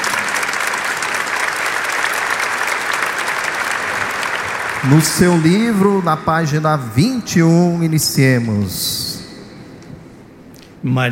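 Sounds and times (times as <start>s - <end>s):
crowd applause: 0.0s - 8.0s
speech: 4.8s - 9.1s, 10.8s - 11.0s.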